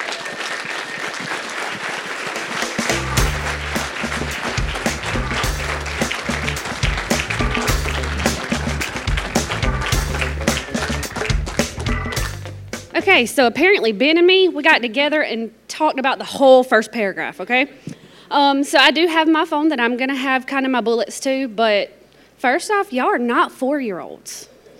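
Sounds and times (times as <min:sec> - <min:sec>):
audience standing applause and cheering: 0:00.0 - 0:12.9
speech: 0:13.0 - 0:24.5.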